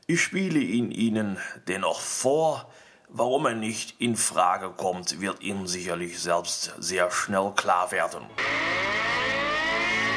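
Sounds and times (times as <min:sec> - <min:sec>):
speech: 0:00.1 - 0:08.8
alarm siren: 0:08.4 - 0:10.1.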